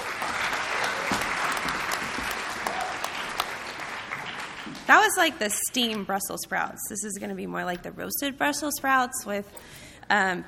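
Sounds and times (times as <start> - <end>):
audience clapping for a speaker at a university student event: 0.0 - 5.6
speech: 4.9 - 10.4.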